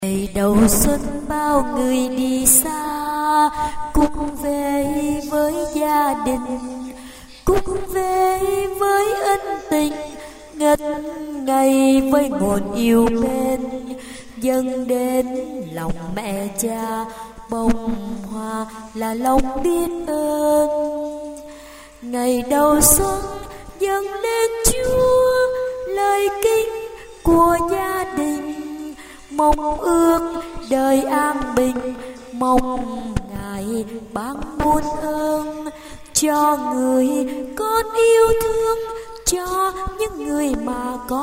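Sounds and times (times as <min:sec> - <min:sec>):
soprano voice: 0:00.0 - 0:41.2.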